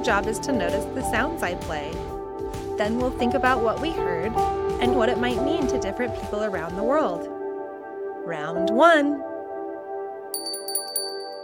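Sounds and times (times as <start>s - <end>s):
speech: 0.0s - 2.2s, 2.8s - 7.4s, 8.3s - 9.3s
bell ringing with a steady low humming tone: 10.4s - 11.4s
bright high-pitched chime strikes: 10.4s - 11.4s.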